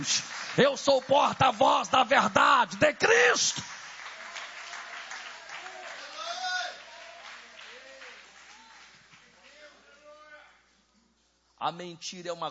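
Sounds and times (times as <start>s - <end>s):
speech: 0.0s - 3.7s, 11.6s - 12.4s
audience applauding: 0.0s - 9.9s.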